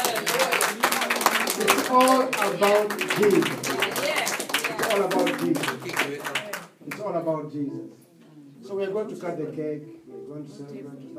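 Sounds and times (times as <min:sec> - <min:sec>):
people clapping: 0:00.0 - 0:07.1
speech: 0:01.6 - 0:03.7, 0:04.9 - 0:08.0, 0:08.7 - 0:11.1.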